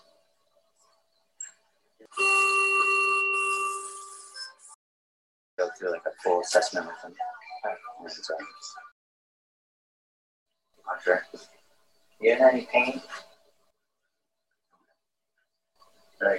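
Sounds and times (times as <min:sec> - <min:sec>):
hospital machine beeping: 0:02.1 - 0:04.7
speech: 0:05.8 - 0:08.9, 0:10.9 - 0:11.6, 0:12.2 - 0:13.3, 0:16.2 - 0:16.3.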